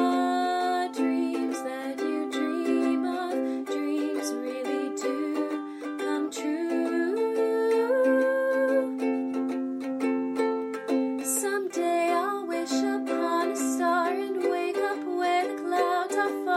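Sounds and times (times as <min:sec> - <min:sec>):
ukulele: 0:00.0 - 0:16.5.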